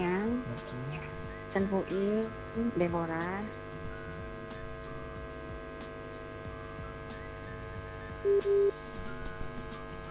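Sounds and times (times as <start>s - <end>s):
faint steady low hum: 0.0s - 10.0s
speech: 1.5s - 3.6s, 8.2s - 8.8s
short flat electronic beeps as a phone call drops during a radio call-in: 8.2s - 8.7s.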